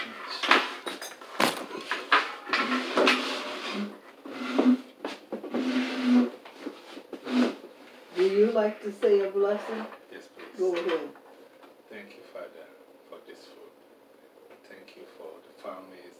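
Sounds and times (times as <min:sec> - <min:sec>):
chair dragged out across the floor: 0:00.0 - 0:11.1
speech: 0:08.6 - 0:10.0, 0:10.6 - 0:11.2.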